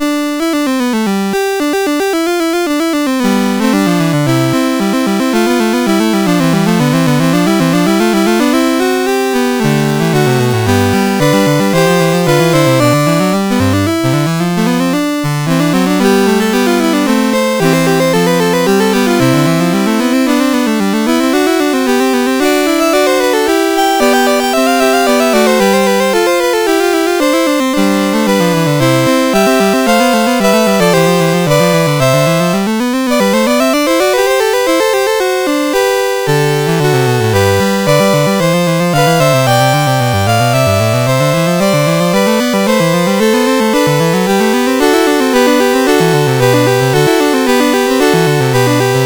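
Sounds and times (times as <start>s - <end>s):
fugue on a CSG8580R5 sound chip: 0.0s - 49.0s.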